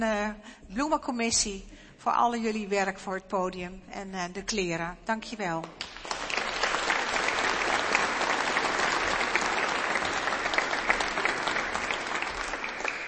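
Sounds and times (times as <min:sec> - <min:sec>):
speech: 0:00.0 - 0:06.0
audience applauding: 0:05.8 - 0:13.0.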